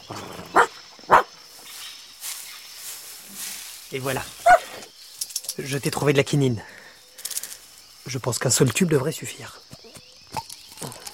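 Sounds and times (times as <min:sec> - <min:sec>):
dog barking: 0:00.5 - 0:01.3, 0:04.4 - 0:04.8
speech: 0:03.9 - 0:04.6, 0:05.5 - 0:06.8, 0:08.1 - 0:09.6.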